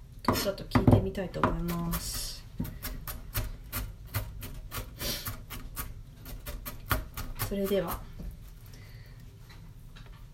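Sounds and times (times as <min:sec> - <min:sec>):
knife finely chopping an onion on a board: 0:00.3 - 0:08.0
speech: 0:00.4 - 0:02.7, 0:07.5 - 0:08.1.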